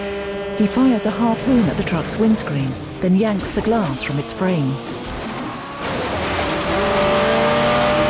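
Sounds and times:
car engine roaring while overtaking a truck: 0.0s - 8.0s
speech: 0.6s - 5.1s.

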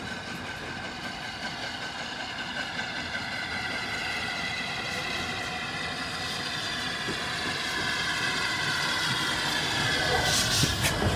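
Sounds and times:
Flying Scotsman steam locomotive passing the Kidderminster Station signal box: 0.0s - 11.1s.

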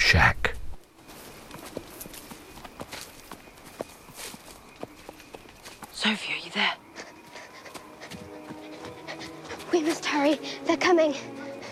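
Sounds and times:
speech: 0.1s - 0.5s, 6.1s - 6.8s, 9.8s - 11.4s
mule hooves on fallen leaves in a forest at night: 0.8s - 11.7s
footsteps on fallen leaves: 0.9s - 6.3s, 7.0s - 10.6s.

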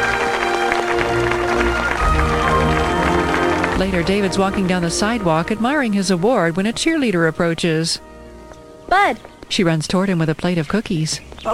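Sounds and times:
person clapping vigorously: 0.0s - 4.4s
speech: 3.8s - 8.1s, 8.9s - 11.5s.

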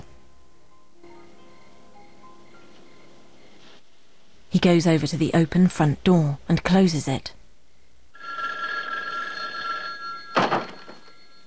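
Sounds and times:
speech: 4.6s - 7.4s
telephone ringing: 8.1s - 11.4s.

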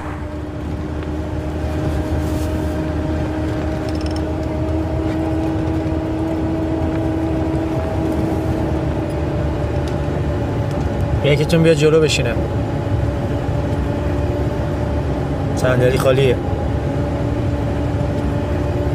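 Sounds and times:
tonal whines: 0.0s - 1.0s
engine hum and road rumble inside a moving car: 0.0s - 18.9s
speech: 11.3s - 12.6s, 15.6s - 16.5s.

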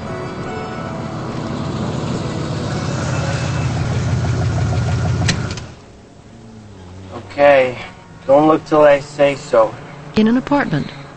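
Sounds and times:
old Pontiac engine idling: 0.0s - 11.1s
engine cutting off click: 1.2s - 5.9s
speech: 7.4s - 11.1s.

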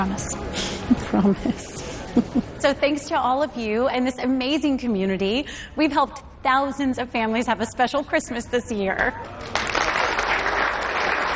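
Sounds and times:
speech: 0.0s - 0.5s, 1.2s - 9.6s
crowd applause at a Christmas community gathering: 9.2s - 11.3s.

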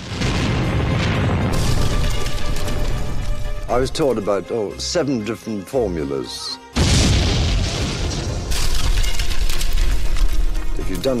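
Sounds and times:
deck chair exploding: 0.0s - 3.4s, 6.8s - 10.4s
speech: 3.7s - 6.6s, 10.9s - 11.1s.

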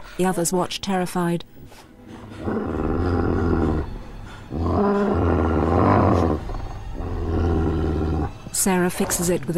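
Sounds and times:
speech: 0.2s - 1.4s, 8.6s - 9.5s
aggressive dog growling and snarling while leaping through a window: 2.2s - 9.5s.

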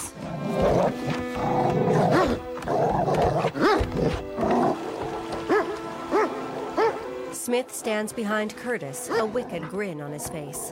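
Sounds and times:
dog growling: 0.1s - 7.1s
dog barking through a wire muzzle: 3.6s - 3.9s, 5.5s - 7.0s
speech: 7.5s - 10.7s.

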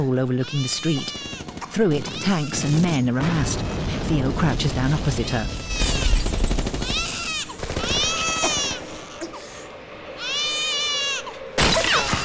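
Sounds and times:
speech: 0.0s - 5.8s
high wavering wailing cries: 0.3s - 3.2s, 5.4s - 12.2s
automatic gunfire in a film battle scene: 5.6s - 8.9s.

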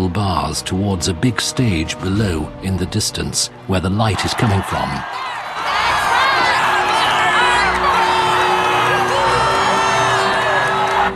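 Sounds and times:
speech: 0.0s - 5.9s
crowd chanting and cheering: 4.1s - 11.1s.

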